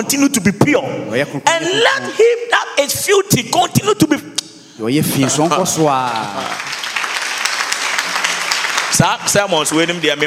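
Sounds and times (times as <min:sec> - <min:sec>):
speech: 0:00.0 - 0:06.9, 0:09.0 - 0:10.2
audience clapping: 0:05.2 - 0:10.2.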